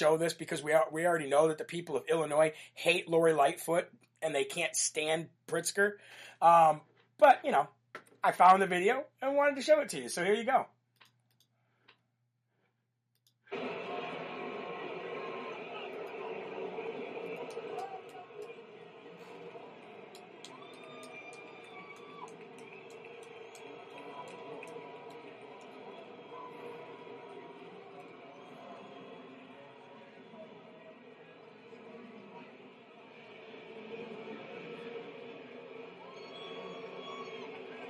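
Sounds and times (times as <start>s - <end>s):
speech: 0.0s - 10.8s
large stadium crowd booing: 13.5s - 37.8s
girl cheering: 19.2s - 27.0s.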